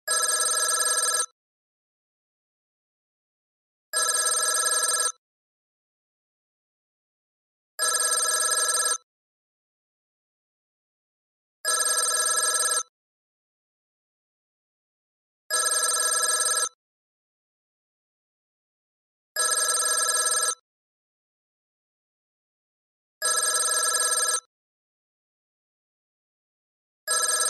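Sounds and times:
old phone: 0.1s - 1.4s, 4.0s - 5.2s, 7.8s - 9.1s, 11.6s - 12.9s, 15.5s - 16.8s, 19.4s - 20.6s, 23.2s - 24.5s, 27.1s - 27.4s.

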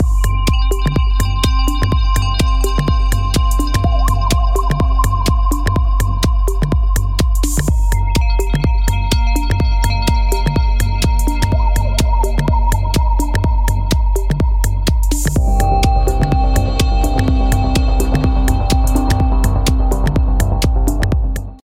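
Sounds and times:
chillout music: 0.0s - 21.6s.

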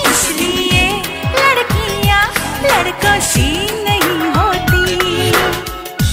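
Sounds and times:
woman humming: 0.1s - 6.1s.

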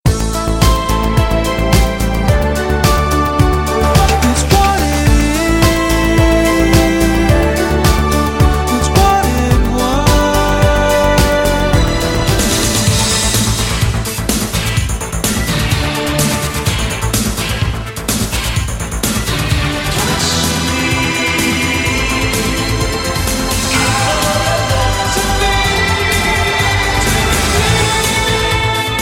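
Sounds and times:
pop song: 0.1s - 18.0s, 19.0s - 29.0s.

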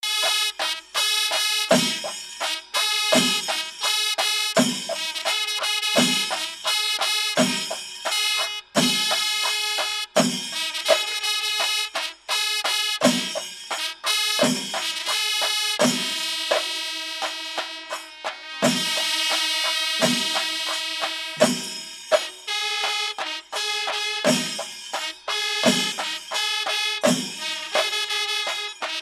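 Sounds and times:
traditional instrument from Kerala: 0.0s - 29.0s.

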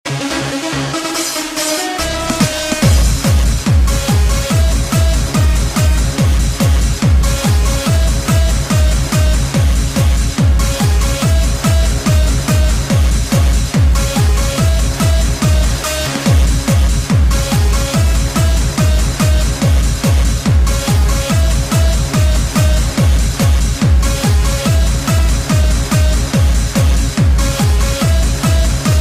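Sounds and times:
hardstyle music: 0.1s - 29.0s.

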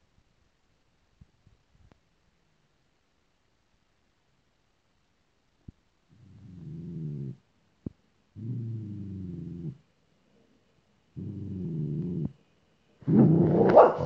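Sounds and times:
grumbling: 6.1s - 7.4s, 8.4s - 9.8s, 11.2s - 12.4s, 13.0s - 14.0s.

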